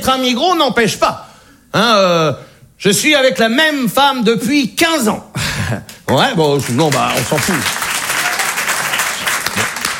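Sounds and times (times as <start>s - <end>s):
speech: 0.0s - 7.8s
audience applause: 6.1s - 9.9s.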